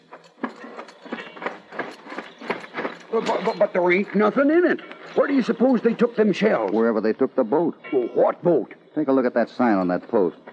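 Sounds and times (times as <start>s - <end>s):
horse-drawn wagon rolling: 0.0s - 6.6s
horse hooves clip-clopping: 0.0s - 6.8s
speech: 3.1s - 10.4s.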